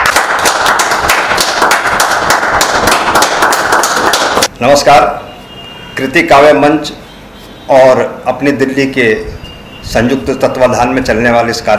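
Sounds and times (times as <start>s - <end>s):
audience applause: 0.0s - 4.5s
speech: 4.6s - 5.2s, 6.0s - 7.0s, 7.7s - 11.7s.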